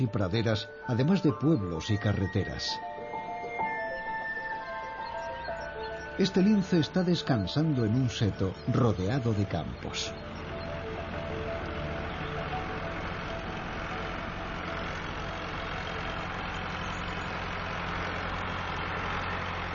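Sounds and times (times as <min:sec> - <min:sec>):
speech: 0:00.0 - 0:02.9, 0:06.2 - 0:10.3
tractor engine running: 0:00.0 - 0:19.7.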